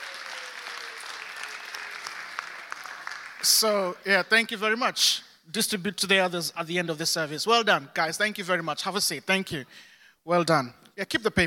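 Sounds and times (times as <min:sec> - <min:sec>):
audience clapping: 0:00.0 - 0:03.9
speech: 0:03.4 - 0:11.4.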